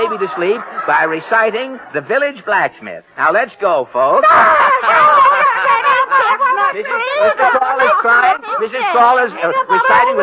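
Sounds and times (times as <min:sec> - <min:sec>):
crowd laughing and shrieking: 0:00.0 - 0:02.0, 0:04.0 - 0:10.2
speech: 0:00.0 - 0:05.3, 0:06.7 - 0:10.2.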